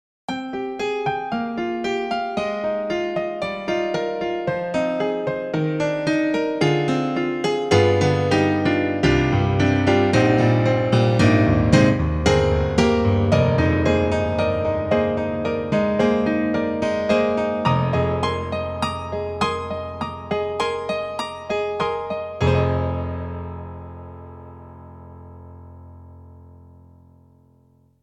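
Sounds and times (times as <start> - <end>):
piano: 0.3 - 28.0.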